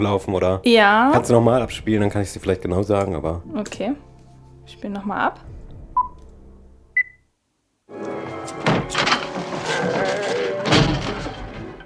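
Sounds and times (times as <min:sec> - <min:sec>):
speech: 0:00.0 - 0:04.1, 0:04.7 - 0:05.6
short electronic beeps: 0:07.0 - 0:07.2
hurried clattering movement with heavy thumps: 0:08.0 - 0:11.8
door slamming: 0:08.4 - 0:11.8.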